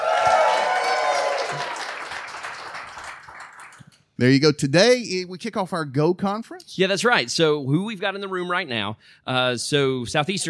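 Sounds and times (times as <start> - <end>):
live studio audience applauding: 0.0 - 4.2
speech: 4.2 - 10.4.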